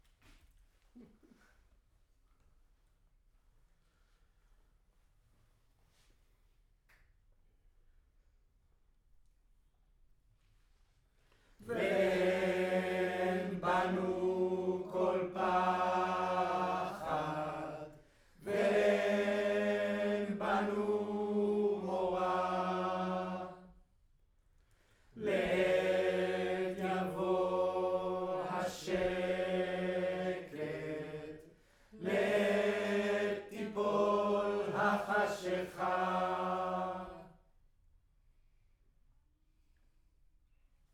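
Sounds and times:
choir singing in room: 0:11.6 - 0:23.8, 0:25.2 - 0:37.4.

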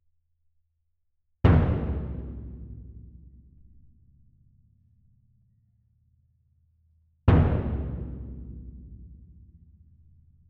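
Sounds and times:
percussion: 0:01.4 - 0:06.1, 0:07.3 - 0:10.4.

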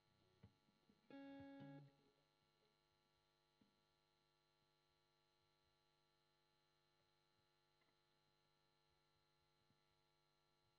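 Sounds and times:
guitar recorded with Royer microphone: 0:00.0 - 0:02.2.

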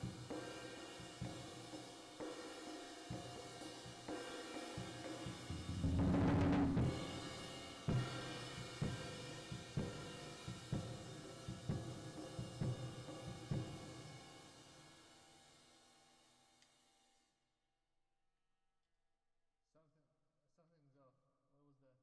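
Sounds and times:
drums with reverb: 0:00.0 - 0:15.9.

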